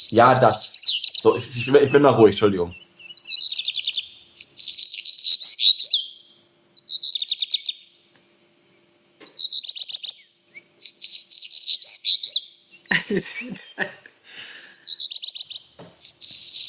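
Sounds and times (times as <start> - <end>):
speech: 0.0 - 2.8
black redstart singing short high trilled phrases: 0.0 - 8.1, 8.8 - 12.9, 14.8 - 16.6
laughter: 1.3 - 2.7, 12.9 - 14.8.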